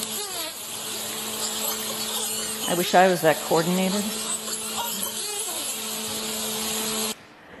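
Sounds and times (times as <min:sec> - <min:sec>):
dolphin sounds: 0:01.0 - 0:05.8
speech: 0:02.7 - 0:04.3.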